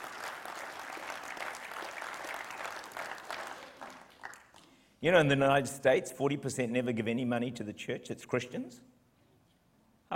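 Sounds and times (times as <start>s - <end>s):
audience cheering and applause: 0.0s - 4.6s
speech: 5.0s - 8.9s.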